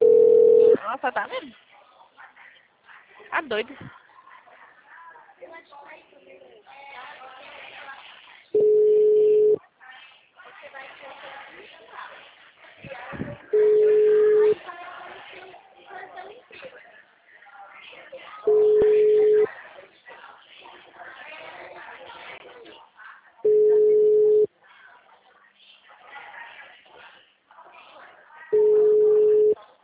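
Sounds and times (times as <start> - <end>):
telephone ringback tone of an unanswered call: 0.0 - 0.8, 8.6 - 9.6, 13.6 - 14.6, 18.5 - 19.5, 23.5 - 24.5, 28.6 - 29.6
speech: 1.0 - 1.7, 3.3 - 4.0.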